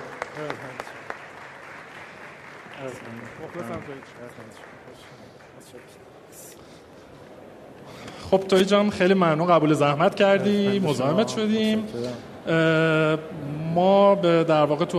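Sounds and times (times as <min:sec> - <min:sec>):
audience applause: 0:00.0 - 0:06.0
speech: 0:00.4 - 0:01.0, 0:02.8 - 0:06.9, 0:07.9 - 0:14.9.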